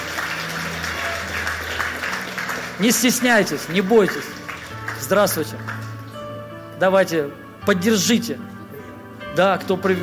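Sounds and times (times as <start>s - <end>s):
audience applause: 0.0s - 6.0s
speech: 2.8s - 4.4s, 5.1s - 5.8s, 6.8s - 8.5s, 9.4s - 10.0s.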